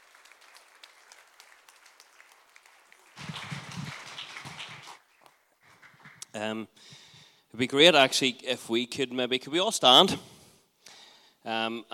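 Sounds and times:
audience round of applause: 0.0s - 6.4s
speech: 6.4s - 7.0s, 7.6s - 10.3s, 11.4s - 11.9s.

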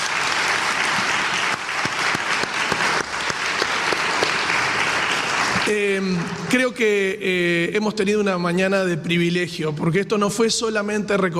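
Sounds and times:
audience applause: 0.0s - 6.7s
speech: 5.7s - 11.3s.

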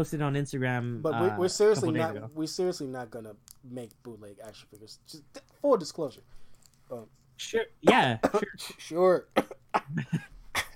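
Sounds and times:
speech: 0.0s - 10.3s
dry cough: 7.9s - 8.8s, 9.4s - 10.7s.

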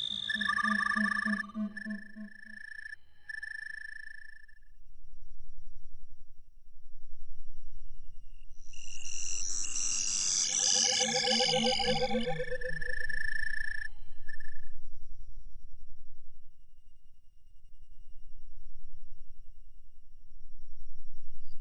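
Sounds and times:
low pulsing tone: 0.1s - 21.5s
soft low rumble: 4.6s - 9.0s, 14.0s - 21.5s.

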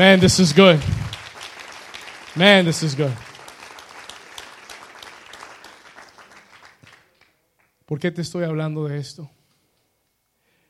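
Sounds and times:
speech: 0.0s - 1.0s, 2.4s - 3.3s, 7.9s - 9.4s
audience applause: 0.0s - 7.3s.

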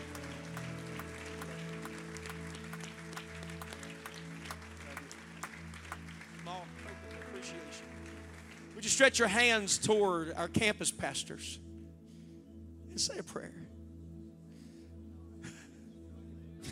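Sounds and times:
audience applauding: 0.0s - 9.7s
speech: 9.0s - 11.7s, 13.0s - 13.8s.

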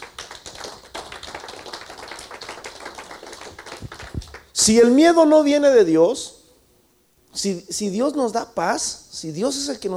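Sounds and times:
audience applause: 0.0s - 4.5s
speech: 4.6s - 6.3s, 7.4s - 9.9s.

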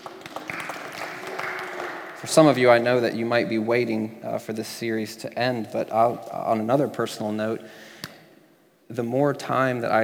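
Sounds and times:
crowd round of applause: 0.0s - 3.0s
speech: 2.2s - 7.9s, 8.9s - 10.0s.

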